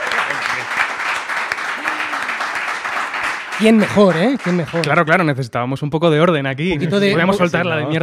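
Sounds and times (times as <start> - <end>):
audience applause: 0.0 - 5.2
speech: 3.6 - 8.0.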